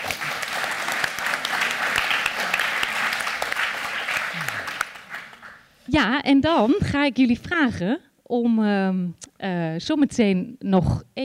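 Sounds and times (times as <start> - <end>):
audience applause: 0.0 - 5.6
speech: 5.9 - 11.2.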